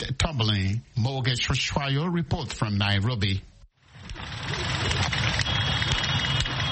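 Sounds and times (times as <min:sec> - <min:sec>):
speech: 0:00.0 - 0:03.5
idling car engines in traffic jam: 0:04.0 - 0:06.6.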